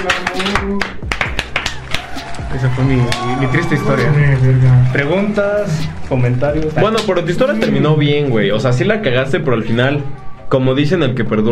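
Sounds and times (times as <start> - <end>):
speech: 0.0 - 1.0, 2.7 - 11.5
audience applause: 0.0 - 7.6.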